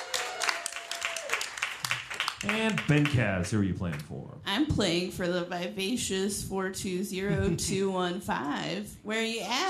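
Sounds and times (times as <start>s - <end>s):
audience applause: 0.0s - 4.0s
speech: 2.4s - 9.6s.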